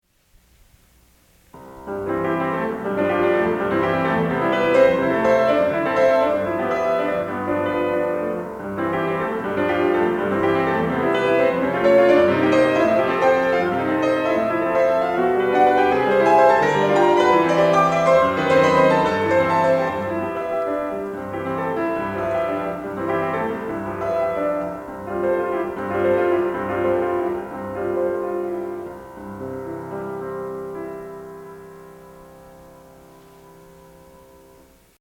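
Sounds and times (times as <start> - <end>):
agitato prelude in C major: 1.6 - 29.0.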